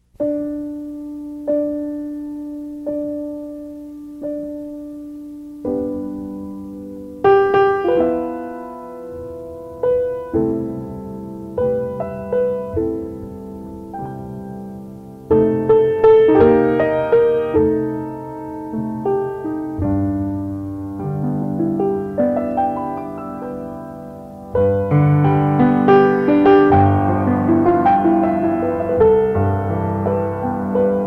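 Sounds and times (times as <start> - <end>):
ballet music: 0.1 - 31.0.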